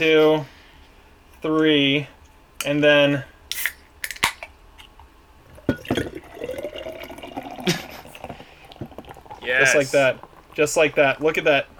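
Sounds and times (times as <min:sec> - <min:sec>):
speech: 0:00.0 - 0:00.6, 0:01.4 - 0:03.3, 0:09.5 - 0:11.7
surge pour beer can popping open: 0:03.5 - 0:04.6
beer pouring from an inverted surge pour can: 0:05.5 - 0:11.7.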